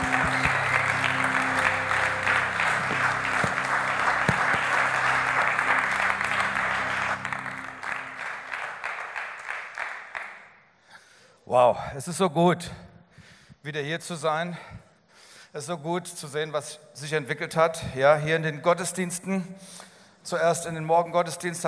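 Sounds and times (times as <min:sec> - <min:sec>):
audience applause: 0:00.0 - 0:10.4
speech: 0:11.6 - 0:12.8, 0:13.6 - 0:14.8, 0:15.6 - 0:21.6.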